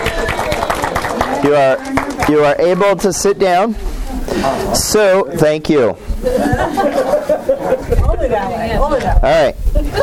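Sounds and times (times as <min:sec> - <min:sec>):
audience applause: 0:00.0 - 0:02.6
murmuring voices: 0:00.0 - 0:10.0
speech: 0:01.4 - 0:10.0
laughter: 0:06.2 - 0:08.5, 0:09.8 - 0:10.0.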